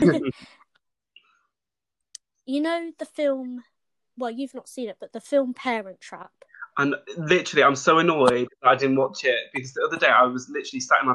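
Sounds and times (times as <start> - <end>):
throat clearing: 0.0 - 0.3, 9.5 - 10.0
speech: 0.0 - 0.6, 2.5 - 11.1.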